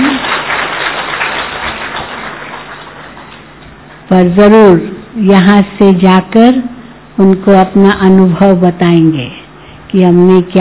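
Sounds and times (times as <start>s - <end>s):
crowd applauding: 0.0s - 3.4s
speech: 4.1s - 10.5s.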